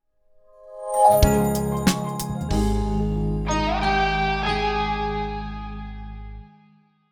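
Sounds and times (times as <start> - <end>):
morning jingle: 0.6 - 4.9.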